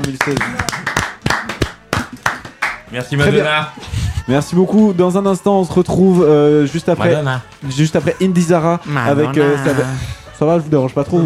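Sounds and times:
applause: 0.0s - 2.9s
speech: 0.1s - 0.8s, 2.9s - 11.2s.

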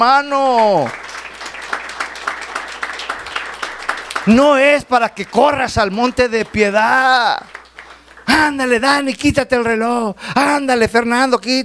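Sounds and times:
speech: 0.0s - 1.1s, 4.2s - 7.6s, 8.4s - 11.6s
audience applause: 0.5s - 8.7s.

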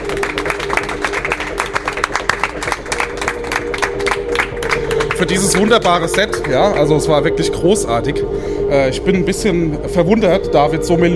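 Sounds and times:
audience applauding: 0.0s - 7.7s
speech: 5.2s - 11.1s.

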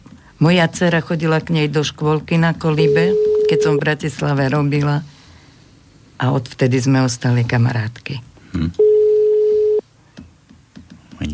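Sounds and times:
speech: 0.4s - 5.1s, 6.2s - 8.8s
telephone ring tone beep: 2.8s - 3.9s, 8.8s - 9.8s.

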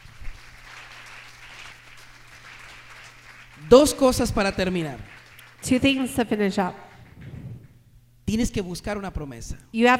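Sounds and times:
audience applause: 0.0s - 6.0s
speech: 3.6s - 6.8s, 8.3s - 9.9s.

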